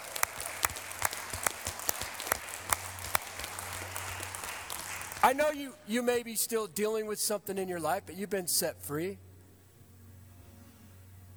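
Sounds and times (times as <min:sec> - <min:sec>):
audience clapping in a steady rhythm: 0:00.0 - 0:09.0
speech: 0:05.3 - 0:09.3.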